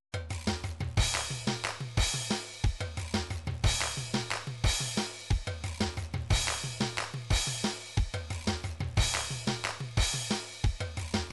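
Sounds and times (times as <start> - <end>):
drum pattern: 0.2 - 11.3.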